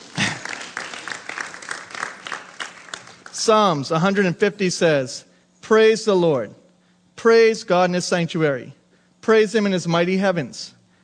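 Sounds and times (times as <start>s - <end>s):
church congregation applauding first-time visitors: 0.0s - 4.0s
speech: 3.4s - 6.6s, 7.2s - 10.8s.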